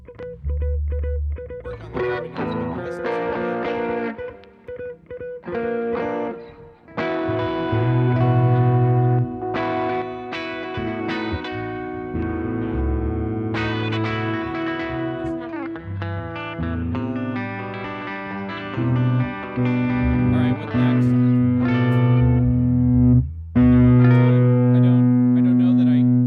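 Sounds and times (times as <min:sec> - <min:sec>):
strings emphasis music mix: 0:00.5 - 0:04.8, 0:05.6 - 0:26.1.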